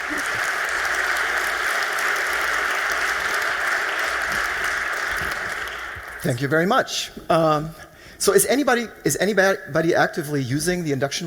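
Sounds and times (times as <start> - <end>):
audience applause: 0.0 - 6.4
speech: 6.2 - 11.2.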